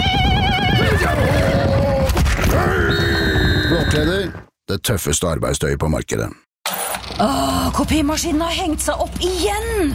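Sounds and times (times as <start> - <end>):
horse whinnying: 0.4 - 4.4
speech: 4.0 - 9.9.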